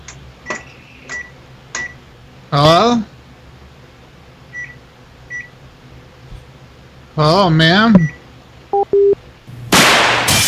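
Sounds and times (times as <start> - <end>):
microwave sound effects: 0.4 - 2.0, 4.5 - 5.5, 8.0 - 8.2, 8.8 - 9.2
speech: 2.5 - 3.1, 7.2 - 8.2.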